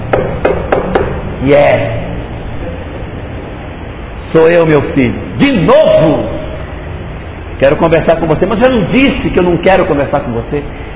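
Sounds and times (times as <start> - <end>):
knocking on a door: 0.1 - 1.2
speech: 1.4 - 2.0, 4.3 - 6.3, 7.6 - 10.9.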